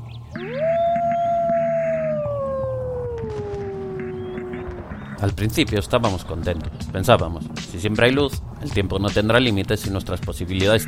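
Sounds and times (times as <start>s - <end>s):
low steady droning background: 0.1s - 7.6s
long lonely howl: 0.4s - 5.0s
speech: 5.2s - 10.8s.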